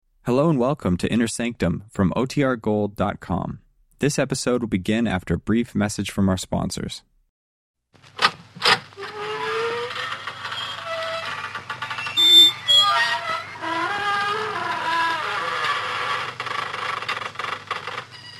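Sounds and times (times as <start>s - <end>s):
speech: 0.3s - 7.1s
creaking door: 8.1s - 18.3s.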